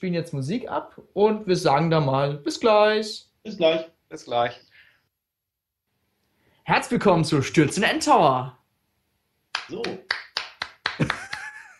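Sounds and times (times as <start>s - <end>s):
speech: 0.0s - 4.7s, 6.7s - 8.6s, 9.6s - 10.2s, 11.0s - 11.2s
audience applause: 9.6s - 11.6s
laughter: 11.0s - 11.7s.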